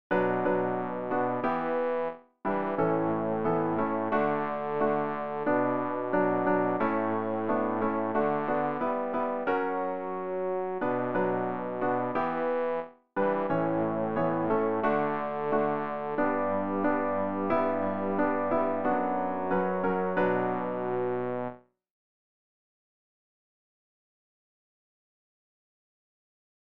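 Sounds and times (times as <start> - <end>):
bass for learning songs: 0.1 - 21.5.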